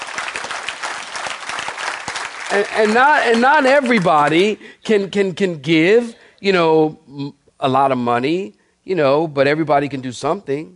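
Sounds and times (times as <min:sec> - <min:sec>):
audience clapping hands: 0:00.0 - 0:04.6
speech: 0:02.5 - 0:10.7.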